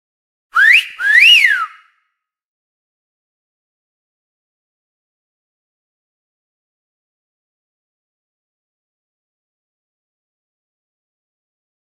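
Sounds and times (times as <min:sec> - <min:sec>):
whistle: 0:00.6 - 0:02.1.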